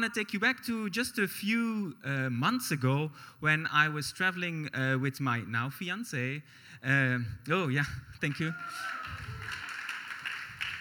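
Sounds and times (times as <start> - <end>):
speech: 0.0 - 9.6
audience applause: 8.3 - 10.7.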